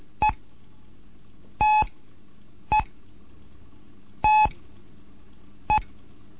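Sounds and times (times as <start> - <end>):
Morse code tones for letters T and E: 1.6 - 1.9, 4.2 - 4.6.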